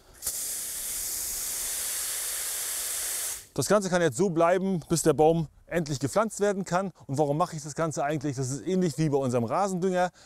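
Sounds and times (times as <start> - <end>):
hose spraying water on soil: 0.0 - 3.6
speech: 3.6 - 10.2.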